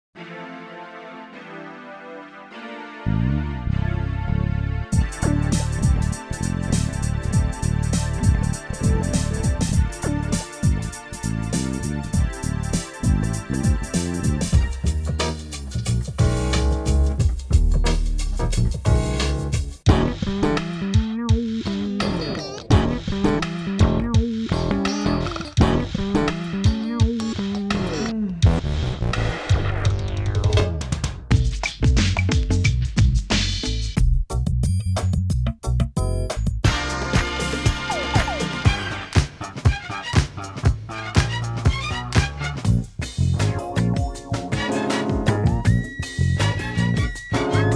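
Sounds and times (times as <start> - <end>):
funk bass: 3.1 - 47.7.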